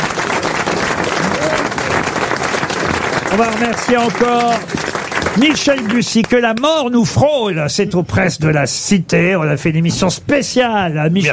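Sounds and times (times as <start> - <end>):
faint crowd murmur: 0.0 - 3.0
audience applause: 0.0 - 6.7
speech: 3.3 - 11.3.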